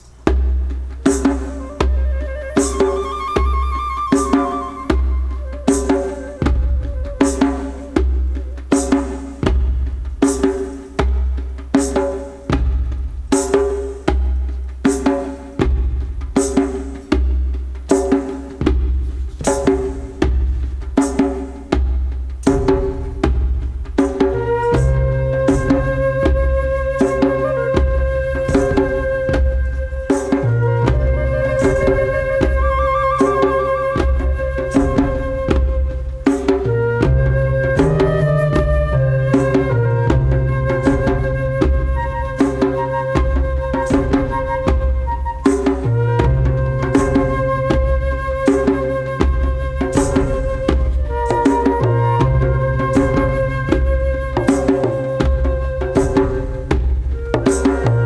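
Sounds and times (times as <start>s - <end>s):
shaman drum beat: 0.0s - 58.0s.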